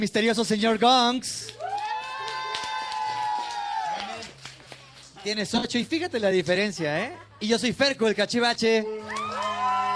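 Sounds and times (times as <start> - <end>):
speech: 0.0 - 1.6, 5.2 - 9.2
scattered handclaps: 1.4 - 5.2
high-pitched whoop from the crowd: 1.6 - 4.2, 9.0 - 9.9.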